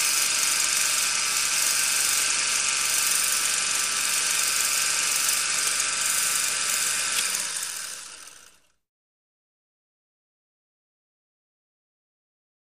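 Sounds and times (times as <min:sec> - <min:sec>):
16mm film projector starting: 0:00.0 - 0:08.8.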